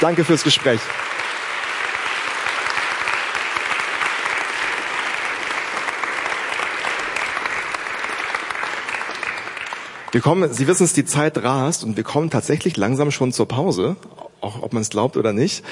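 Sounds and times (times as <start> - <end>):
speech: 0.0 - 1.1, 10.1 - 15.6
audience applause: 0.0 - 10.9.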